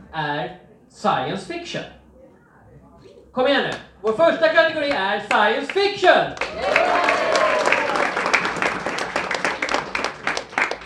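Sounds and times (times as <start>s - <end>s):
speech: 0.1s - 2.0s, 3.4s - 7.4s
audience cheering: 6.4s - 10.8s.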